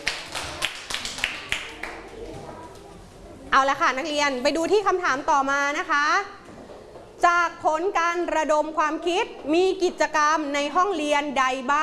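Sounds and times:
classroom clapping: 0:00.0 - 0:02.9
speech: 0:03.6 - 0:06.4, 0:07.2 - 0:11.8.

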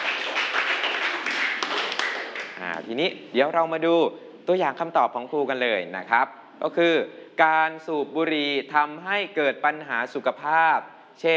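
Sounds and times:
classroom applause: 0:00.0 - 0:02.8
speech: 0:02.9 - 0:11.3.

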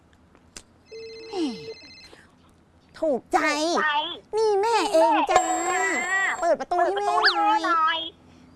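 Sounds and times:
telephone ringing: 0:00.9 - 0:02.1
speech: 0:03.0 - 0:08.0.

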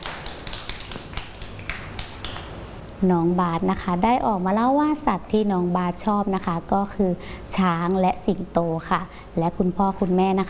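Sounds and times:
small group of children clapping hands: 0:00.0 - 0:02.5
speech: 0:03.0 - 0:10.4.

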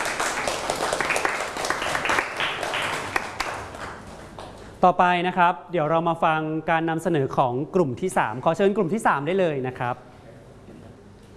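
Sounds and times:
group of people applauding: 0:00.0 - 0:04.8
speech: 0:04.8 - 0:10.1.

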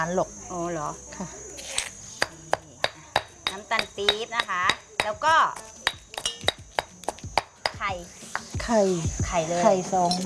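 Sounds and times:
speech: 0:00.0 - 0:01.5, 0:03.7 - 0:05.6, 0:07.8 - 0:10.2
pestle pounding curry paste in a mortar: 0:02.2 - 0:08.7.

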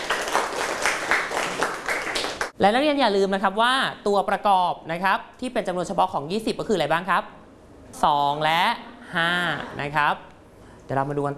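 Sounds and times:
students clapping in a classroom: 0:00.0 - 0:02.6
speech: 0:02.6 - 0:10.3, 0:10.9 - 0:11.3.

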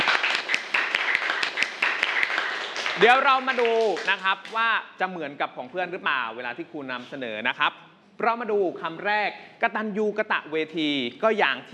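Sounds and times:
classroom applause: 0:00.0 - 0:04.6
speech: 0:03.0 - 0:11.7.

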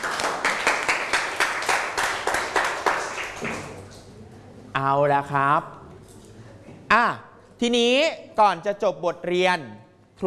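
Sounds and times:
students clapping: 0:00.0 - 0:03.9
speech: 0:04.9 - 0:05.8, 0:06.9 - 0:10.2.

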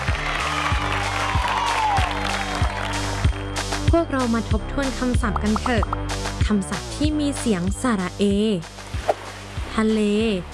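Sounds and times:
children clapping hands: 0:00.0 - 0:03.6
speech: 0:03.9 - 0:08.8, 0:09.8 - 0:10.5.

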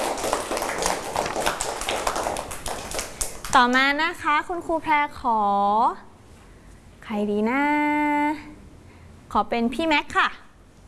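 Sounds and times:
group applause: 0:00.0 - 0:03.8
speech: 0:03.6 - 0:06.1, 0:07.1 - 0:08.5, 0:09.3 - 0:10.4.

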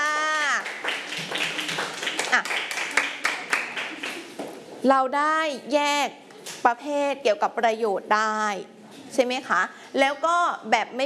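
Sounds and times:
students clapping: 0:00.5 - 0:04.4
speech: 0:04.8 - 0:11.0.

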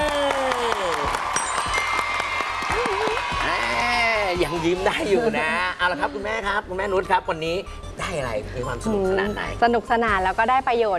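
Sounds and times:
audience applause at an award ceremony: 0:00.0 - 0:04.0
speech: 0:04.4 - 0:10.9.

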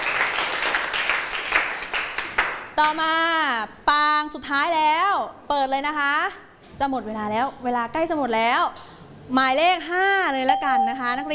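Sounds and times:
students clapping in a classroom: 0:00.0 - 0:02.7
speech: 0:02.8 - 0:11.3.

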